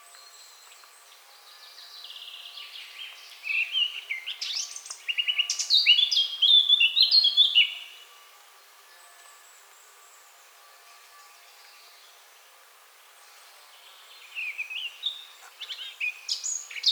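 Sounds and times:
Eurasian blackcap Sylvia atricapilla song: 0.0 - 8.0, 13.8 - 16.9.

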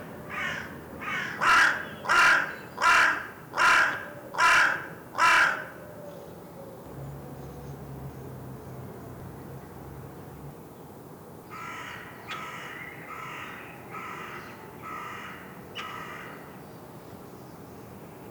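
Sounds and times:
carrion crow giving harsh hoarse caws: 0.3 - 5.8, 11.5 - 16.5.

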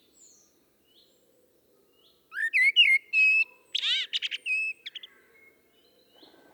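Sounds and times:
common blackbird singing: 2.3 - 5.1.

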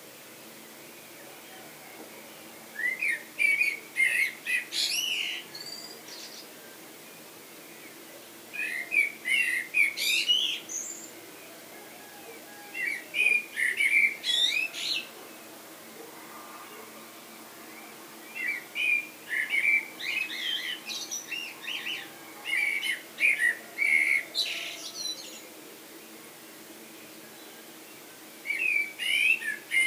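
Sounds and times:
common blackbird Turdus merula singing: 0.9 - 6.8, 8.5 - 15.4, 17.6 - 25.5, 28.4 - 29.8.

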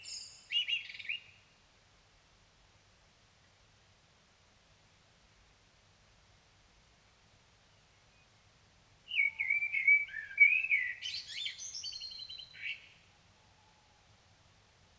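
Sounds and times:
Common blackbird singing: 0.0 - 1.4, 9.1 - 13.0.

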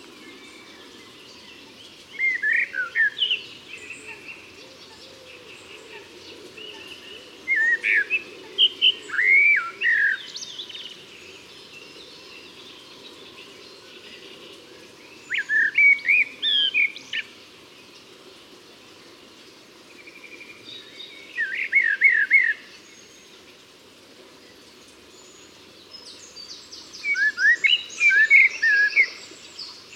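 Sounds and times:
hiss: 0.0 - 29.9
common blackbird singing: 0.2 - 14.4, 15.0 - 17.3, 20.0 - 23.2, 25.2 - 29.9.

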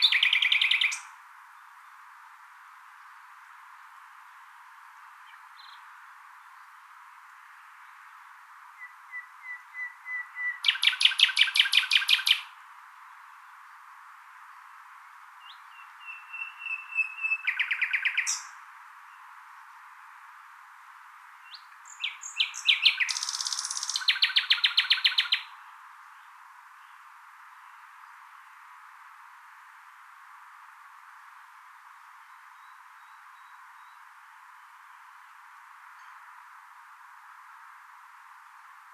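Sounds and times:
common nightingale singing: 0.0 - 1.2, 8.7 - 12.5, 15.4 - 19.3, 21.4 - 27.0.

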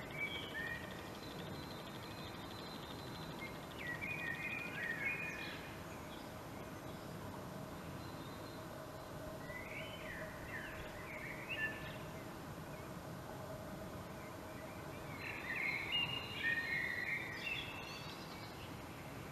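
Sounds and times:
common blackbird singing: 0.0 - 7.2, 9.4 - 12.9, 14.5 - 18.9
background hiss: 0.0 - 19.3.

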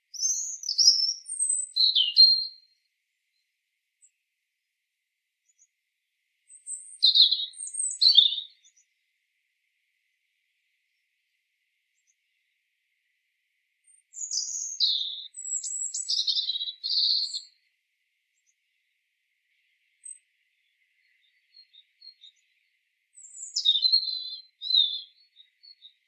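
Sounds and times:
Erithacus rubecula: 0.0 - 3.4, 6.5 - 8.9, 13.8 - 17.7, 20.0 - 26.0.

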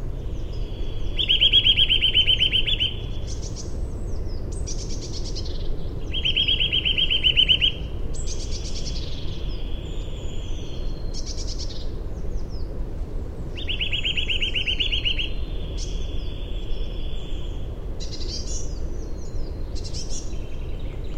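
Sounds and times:
Sitta europaea: 0.2 - 11.9, 13.5 - 21.1.

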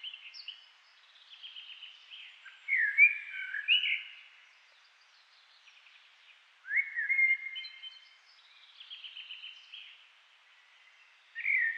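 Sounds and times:
common blackbird Turdus merula singing: 1.2 - 4.2, 6.7 - 9.9, 11.4 - 11.7.

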